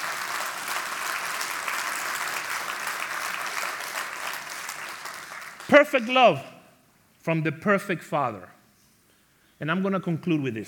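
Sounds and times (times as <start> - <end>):
audience applause: 0.0 - 6.0
speech: 5.7 - 6.5, 7.2 - 8.6, 9.6 - 10.6.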